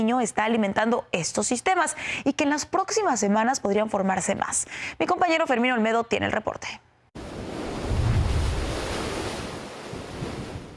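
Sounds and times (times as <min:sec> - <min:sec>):
speech: 0:00.0 - 0:06.9
ocean waves crashing: 0:07.2 - 0:10.7.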